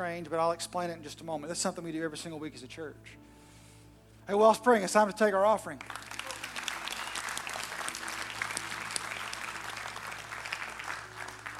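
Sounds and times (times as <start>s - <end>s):
speech: 0.0s - 3.3s, 4.3s - 6.1s
audience clapping: 5.8s - 11.5s.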